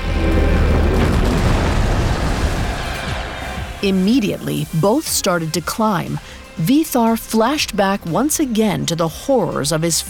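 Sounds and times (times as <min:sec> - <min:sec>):
giant crashing down: 0:00.0 - 0:05.1
speech: 0:03.8 - 0:10.0.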